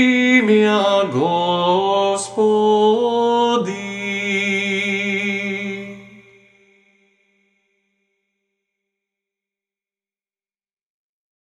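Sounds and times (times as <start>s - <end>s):
Serbian Orthodox chant in the sixth tone: 0.0s - 7.1s.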